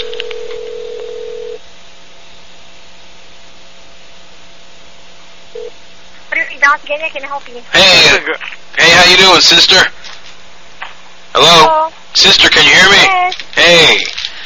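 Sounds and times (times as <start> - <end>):
telephone dial tone: 0.0 - 1.6
speech: 6.7 - 10.0, 11.4 - 14.1.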